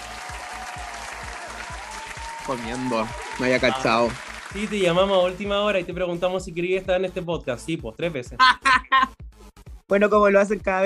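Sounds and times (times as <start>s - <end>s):
audience applause: 0.0s - 5.4s
speech: 2.5s - 9.2s, 9.9s - 10.8s
laughter: 8.4s - 9.1s.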